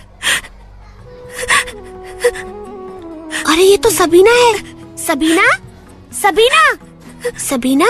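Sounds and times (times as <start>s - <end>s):
girl sobbing in the principal's room: 1.1s - 5.0s
speech: 3.5s - 5.6s, 6.2s - 7.8s.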